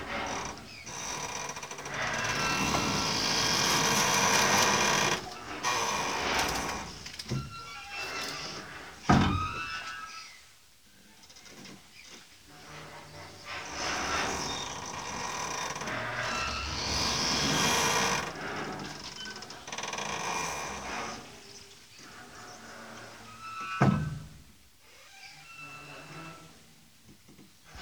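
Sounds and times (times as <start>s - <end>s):
creaking: 0.0s - 10.0s, 13.6s - 21.3s.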